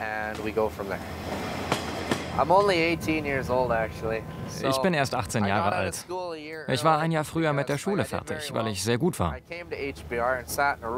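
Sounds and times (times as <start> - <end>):
speech: 0.0 - 1.4, 2.4 - 10.9
track clacks: 0.0 - 4.3
train running on rails: 0.0 - 5.9.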